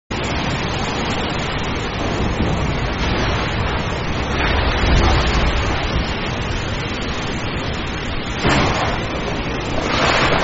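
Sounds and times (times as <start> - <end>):
storm in the middle of the ocean: 0.1 - 10.4.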